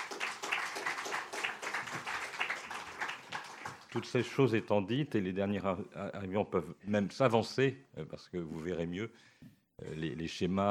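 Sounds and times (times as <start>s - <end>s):
audience applause: 0.0s - 4.4s
speech: 3.9s - 10.6s.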